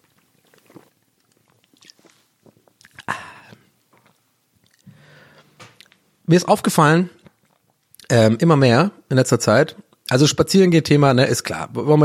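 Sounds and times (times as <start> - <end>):
person sipping a drink: 0.0 - 6.0
loud swallow: 0.4 - 4.9
speech: 6.3 - 7.2, 8.1 - 12.0.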